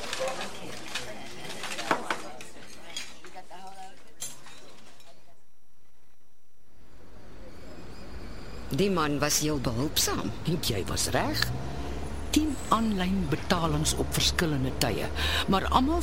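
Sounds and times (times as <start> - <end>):
cutlery and dishes clinking as people start eating a meal: 0.0 - 5.3
speech: 8.7 - 11.6, 12.4 - 16.0.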